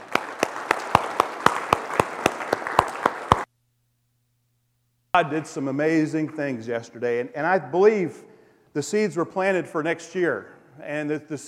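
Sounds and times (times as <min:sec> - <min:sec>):
audience applause: 0:00.0 - 0:03.5
speech: 0:05.2 - 0:11.4.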